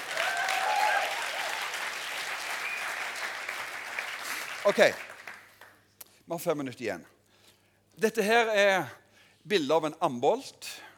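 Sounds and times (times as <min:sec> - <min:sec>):
audience clapping: 0:00.0 - 0:05.9
speech: 0:04.6 - 0:05.1, 0:06.3 - 0:07.1, 0:08.0 - 0:10.9.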